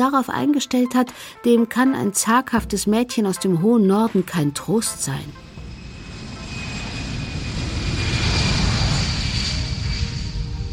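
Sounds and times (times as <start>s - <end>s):
speech: 0.0s - 5.4s
airplane in flight: 4.8s - 10.7s.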